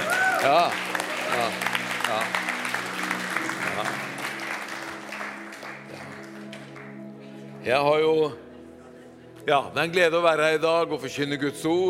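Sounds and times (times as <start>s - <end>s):
audience applause: 0.0s - 7.1s
speech: 0.4s - 2.5s, 7.6s - 8.4s, 9.5s - 11.8s.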